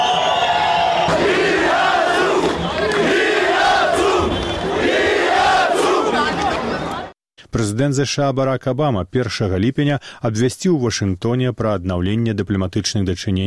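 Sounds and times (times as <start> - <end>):
protesters chanting a slogan: 1.1 - 7.1
speech: 7.6 - 13.4.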